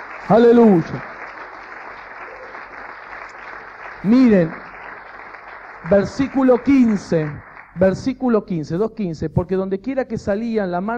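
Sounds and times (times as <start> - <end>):
audience applauding: 0.0 - 8.2
speech: 0.3 - 1.1, 4.0 - 4.6, 5.8 - 10.9.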